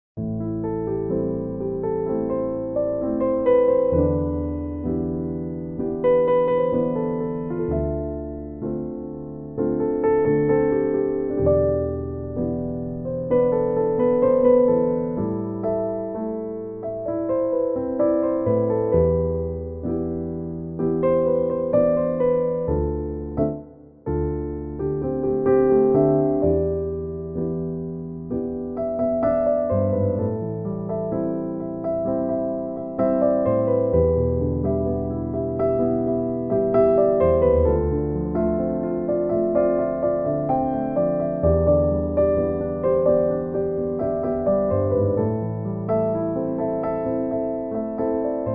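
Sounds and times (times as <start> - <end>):
piano cover: 0.2 - 48.5.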